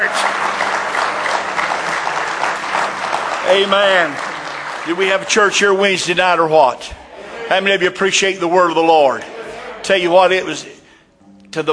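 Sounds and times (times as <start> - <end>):
audience hand clapping: 0.0 - 7.1
speech: 3.5 - 10.7, 11.6 - 11.7
laughter: 6.8 - 10.2.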